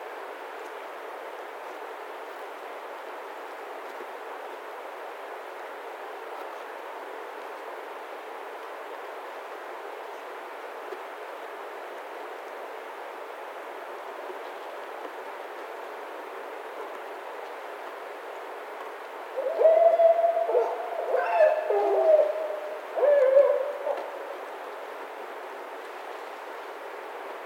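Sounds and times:
Barred Owl calling: 0:19.4 - 0:24.3.

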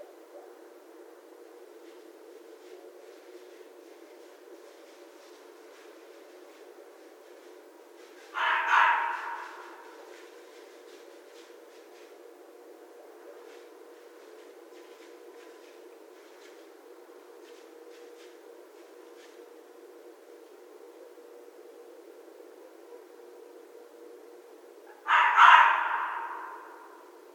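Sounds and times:
red fox calling: 0:08.2 - 0:10.2, 0:24.9 - 0:27.0.

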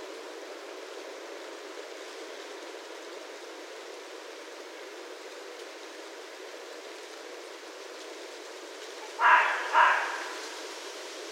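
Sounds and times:
red fox barking: 0:09.0 - 0:10.8.

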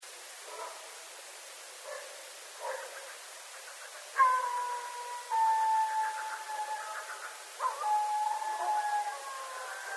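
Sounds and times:
several coyotes yipping and chattering in a chorus: 0:04.1 - 0:09.9.

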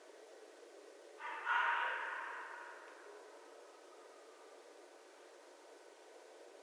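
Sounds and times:
red fox raspy cry: 0:01.2 - 0:03.2.

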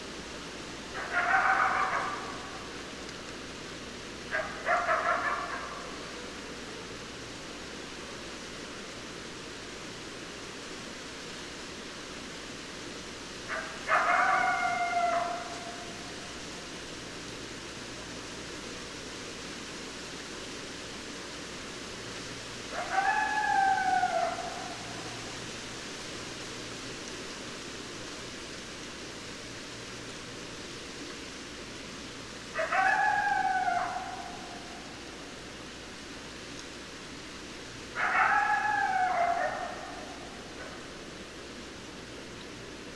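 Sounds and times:
background hiss: 0:00.0 - 0:42.9
coyote howls: 0:00.9 - 0:02.8, 0:04.3 - 0:06.2, 0:13.5 - 0:16.2, 0:22.7 - 0:25.3, 0:32.5 - 0:35.1, 0:37.9 - 0:40.9.

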